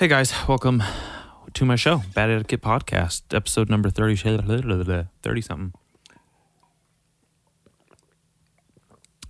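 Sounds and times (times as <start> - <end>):
speech: 0.0 - 5.8
person drinking water into the microphone: 5.9 - 9.2.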